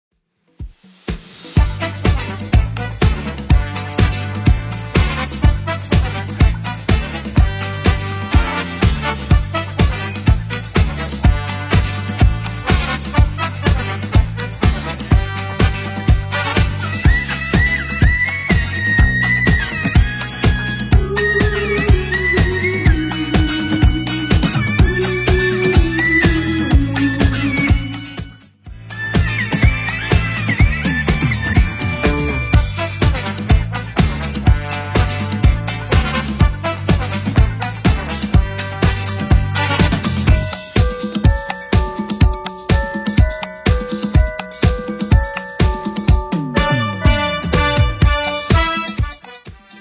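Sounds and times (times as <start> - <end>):
Christmas dance track at 124 bpm: 1.0 - 49.7.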